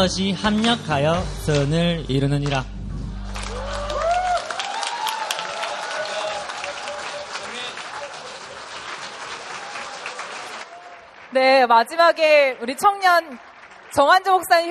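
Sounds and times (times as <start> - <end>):
speech: 0.0 - 2.8, 11.4 - 14.6
audience applause: 3.2 - 14.6.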